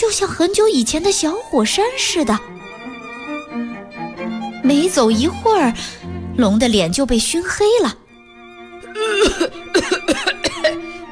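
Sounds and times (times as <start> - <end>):
speech: 0.0 - 2.6, 4.6 - 8.0
person coughing: 8.9 - 10.9.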